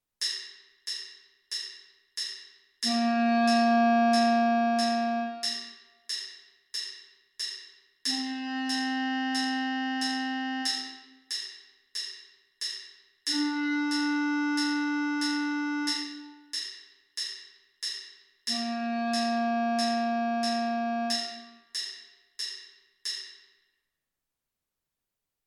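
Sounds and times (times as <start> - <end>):
clarinet: 2.8 - 5.8, 8.1 - 11.2, 13.3 - 16.5, 18.5 - 21.7.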